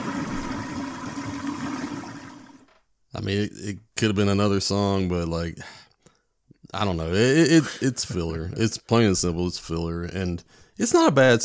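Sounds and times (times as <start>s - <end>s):
toilet flushing: 0.0s - 2.8s
speech: 3.1s - 5.8s, 6.7s - 11.4s.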